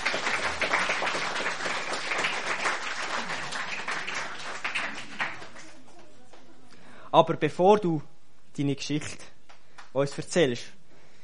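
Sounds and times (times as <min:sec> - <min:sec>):
warm applause: 0:00.0 - 0:06.0
speech: 0:07.1 - 0:09.3, 0:10.0 - 0:10.8.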